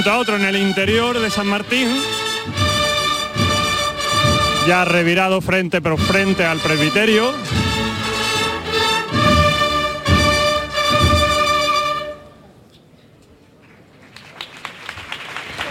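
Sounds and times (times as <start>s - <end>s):
speech: 0.0s - 2.7s, 4.7s - 7.6s
band chord with pulsing accents: 0.0s - 5.2s, 6.0s - 12.4s
crowd applause from a large gathering in a square: 14.0s - 15.6s.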